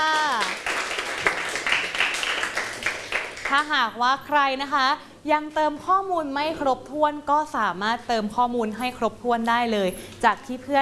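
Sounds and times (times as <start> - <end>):
students clapping in a classroom: 0.0 - 3.7
speech: 3.5 - 10.7.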